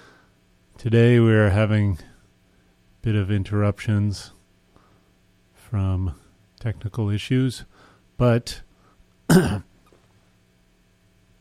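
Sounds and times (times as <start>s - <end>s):
speech: 0.8s - 2.1s, 3.0s - 4.4s, 5.7s - 8.6s, 9.3s - 9.7s
throat clearing from a tickle in the throat: 9.3s - 9.7s.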